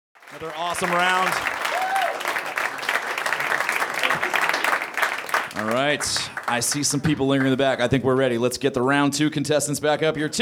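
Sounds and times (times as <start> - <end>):
audience round of applause: 0.2 - 7.8
speech: 0.3 - 1.6, 5.6 - 10.4.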